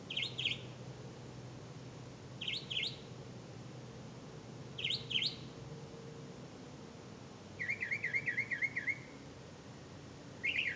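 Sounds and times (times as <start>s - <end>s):
bird chirps: 0.1s - 0.7s, 2.4s - 3.1s, 4.8s - 5.5s, 7.6s - 9.2s, 10.4s - 10.7s.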